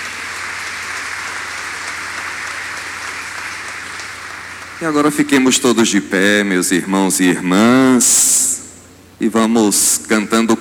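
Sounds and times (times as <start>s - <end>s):
warm applause: 0.0s - 5.6s
speech: 4.8s - 8.3s, 9.2s - 10.6s.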